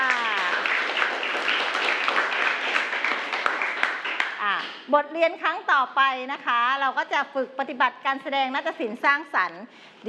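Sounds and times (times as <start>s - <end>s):
class applauding: 0.0s - 4.6s
speech: 4.9s - 10.0s.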